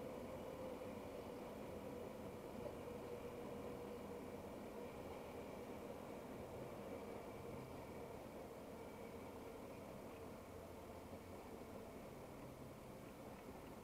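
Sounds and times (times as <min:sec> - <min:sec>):
railway station ambience: 0:00.0 - 0:13.8.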